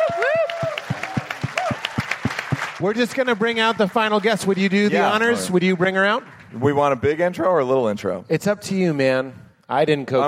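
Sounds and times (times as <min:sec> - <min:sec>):
high whistles and cheers: 0:00.0 - 0:02.3
audience applause in rhythmic claps: 0:00.0 - 0:07.3
speech: 0:02.8 - 0:10.2.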